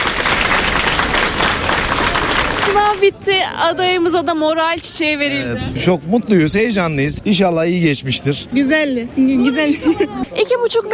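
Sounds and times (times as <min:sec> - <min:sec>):
waiting families applauding candidates leaving a university entrance exam: 0:00.0 - 0:03.1
crowd noise: 0:00.0 - 0:10.9
speech: 0:02.9 - 0:10.9.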